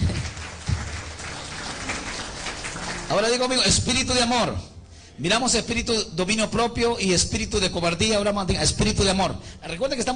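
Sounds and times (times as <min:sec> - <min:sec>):
audience applause: 0:00.0 - 0:03.7
speech: 0:03.1 - 0:10.1.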